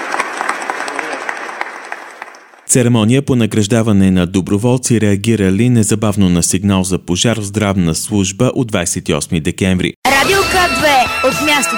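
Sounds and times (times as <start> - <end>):
applause for volunteers at an award ceremony: 0.0 - 2.7
speech: 2.7 - 11.7.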